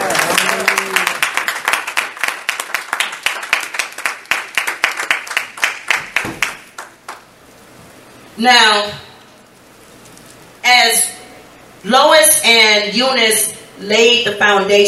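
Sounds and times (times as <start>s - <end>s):
audience clapping: 0.0s - 7.3s
speech: 8.4s - 9.0s, 11.8s - 14.8s.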